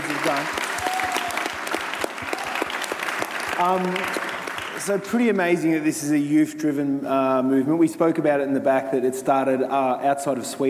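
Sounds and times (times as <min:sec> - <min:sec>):
audience applause: 0:00.0 - 0:05.1
speech: 0:00.3 - 0:00.6, 0:03.6 - 0:10.6.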